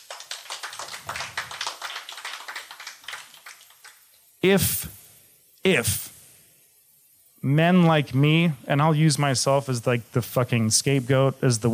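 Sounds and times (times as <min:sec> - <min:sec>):
audience applause: 0:00.0 - 0:04.0
man speaking loudly: 0:04.4 - 0:04.9, 0:05.7 - 0:06.1, 0:07.4 - 0:11.7
speech: 0:04.4 - 0:05.0, 0:05.6 - 0:06.1, 0:07.4 - 0:11.7.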